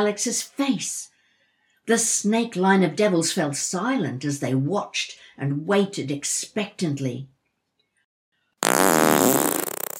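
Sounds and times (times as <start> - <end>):
speech: 0.0 - 1.1, 1.9 - 7.3
fart: 8.6 - 9.9.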